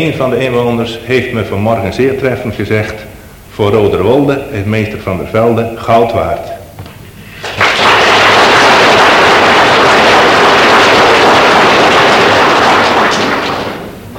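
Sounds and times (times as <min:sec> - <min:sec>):
speech: 0:00.0 - 0:06.6
crowd applauding loudly: 0:07.4 - 0:14.0.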